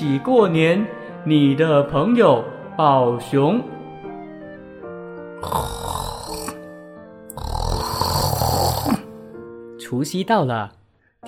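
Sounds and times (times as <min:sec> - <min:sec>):
speech: 0:00.0 - 0:03.7, 0:09.9 - 0:11.2
loud rasping snores: 0:05.4 - 0:06.6, 0:07.3 - 0:09.1.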